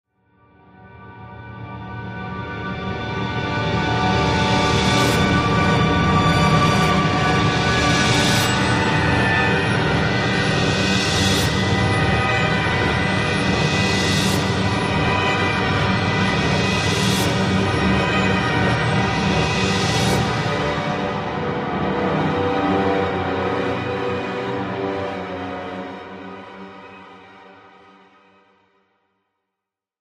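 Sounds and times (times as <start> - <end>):
eerie orchestral music: 2.2 - 27.3.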